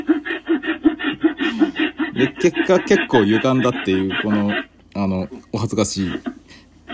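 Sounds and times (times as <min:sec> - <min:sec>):
handsaw sawing wood: 0:00.0 - 0:04.7
speech: 0:02.2 - 0:06.3.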